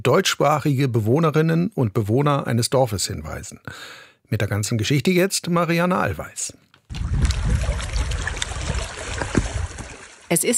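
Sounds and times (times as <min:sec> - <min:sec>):
speech: 0:00.0 - 0:08.0, 0:10.3 - 0:10.5
water lapping at Lipno reservoir shore: 0:06.9 - 0:10.5.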